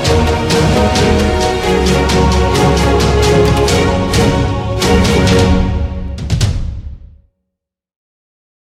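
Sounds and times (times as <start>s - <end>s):
epic jingle: 0.0s - 6.8s.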